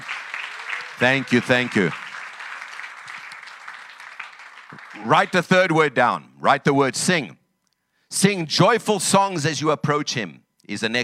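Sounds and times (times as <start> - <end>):
audience applause: 0.0 - 5.5
speech: 1.0 - 2.0, 5.1 - 7.4, 8.1 - 11.0.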